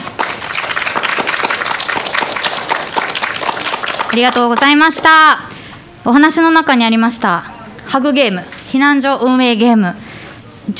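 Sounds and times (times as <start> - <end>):
sustained audience applause: 0.0 - 5.2
speech: 4.1 - 10.0.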